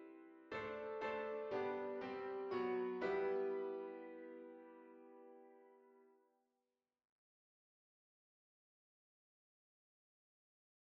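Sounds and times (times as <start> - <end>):
piano: 0.0 - 6.2.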